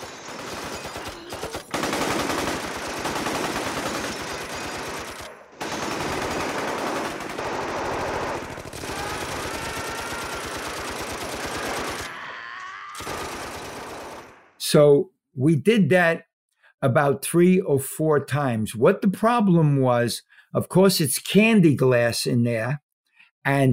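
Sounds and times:
machine gun firing blanks: 0.0s - 12.1s, 13.0s - 14.6s
speech: 14.7s - 22.8s, 23.4s - 23.7s.

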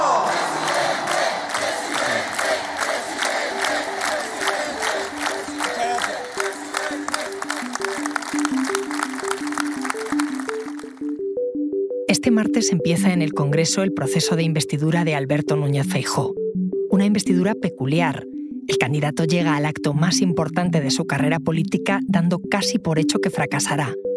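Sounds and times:
crowd chanting: 0.0s - 8.2s
crowd applauding at rally: 0.0s - 11.1s
speech: 12.2s - 16.4s, 17.0s - 24.0s.

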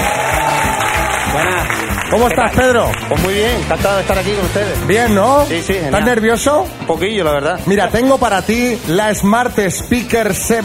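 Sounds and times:
audience applause: 0.0s - 4.6s
speech: 1.4s - 10.6s.

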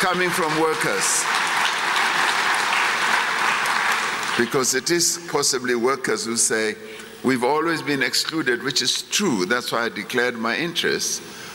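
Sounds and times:
speech: 0.0s - 1.6s, 4.4s - 11.5s
thin audience applause at a public meeting: 0.0s - 4.7s.

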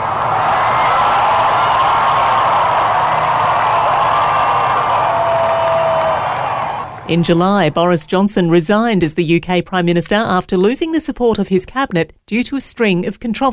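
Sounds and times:
raucous applause from crowds gathered to pay tribute: 0.0s - 7.8s
speech: 7.1s - 13.5s.

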